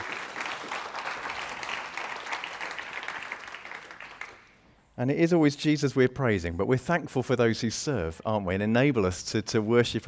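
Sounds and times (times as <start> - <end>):
audience applause for the band: 0.0 - 4.5
speech: 5.0 - 10.0.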